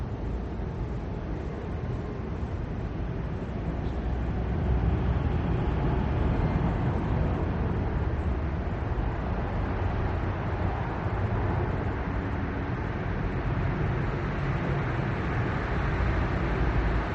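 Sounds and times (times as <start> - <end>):
rare pedestrians on Prague street: 0.0 - 17.1
passing cars on wet Prague street late at night: 3.7 - 17.1.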